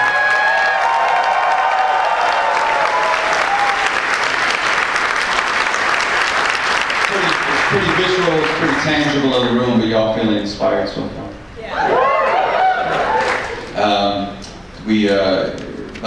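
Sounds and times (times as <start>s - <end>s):
crowd applause and cheering: 0.0s - 9.6s, 11.8s - 13.8s
speech: 8.8s - 11.2s, 14.9s - 16.0s.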